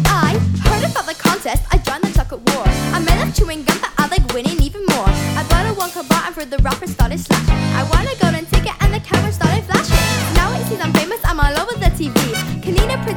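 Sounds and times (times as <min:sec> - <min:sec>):
concert backing track music: 0:00.0 - 0:13.1.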